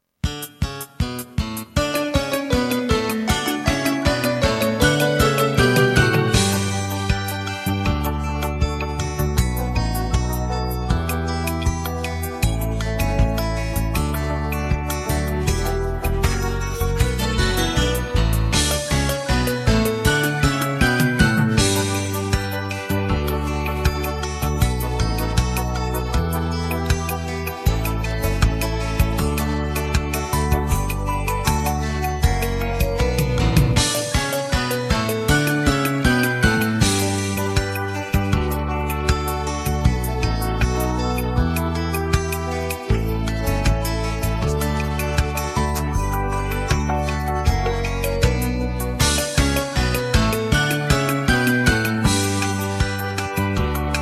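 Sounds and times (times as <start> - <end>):
backing track: 0.2 - 54.0.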